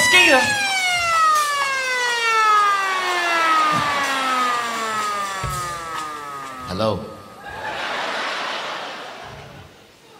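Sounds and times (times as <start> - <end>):
siren-like horn sound effect: 0.0 - 7.5
speech: 0.3 - 0.6, 6.8 - 7.1
laughter: 7.4 - 10.1.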